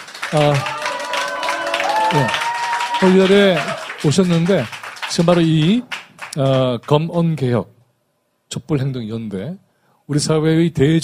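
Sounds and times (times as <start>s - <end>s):
audience applause: 0.0s - 6.9s
speech: 0.3s - 0.7s, 2.1s - 2.4s, 3.0s - 7.8s, 8.5s - 11.0s.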